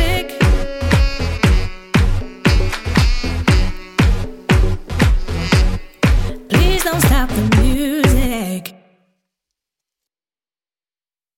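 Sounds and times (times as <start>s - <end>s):
drum and decks trio: 0.0s - 8.5s.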